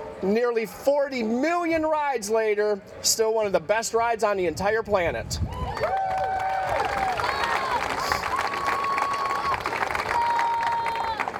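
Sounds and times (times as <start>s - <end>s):
speech: 0.2s - 6.0s
crowd applause and cheering: 5.5s - 11.3s.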